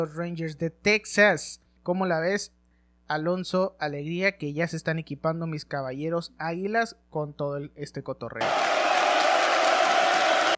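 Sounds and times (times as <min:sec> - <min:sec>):
speech: 0:00.0 - 0:09.0
standing ovation applause: 0:08.4 - 0:10.5.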